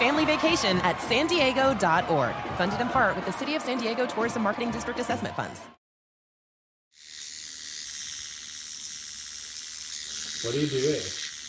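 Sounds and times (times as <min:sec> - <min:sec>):
speech: 0:00.2 - 0:05.8, 0:10.4 - 0:11.2
electric bikini trimmer shaving chin hairs: 0:06.9 - 0:11.4.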